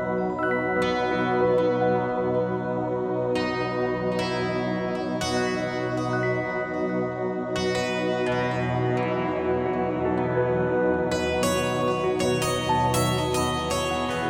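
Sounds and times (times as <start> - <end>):
deep sleep relaxation music: 0.0 - 14.2.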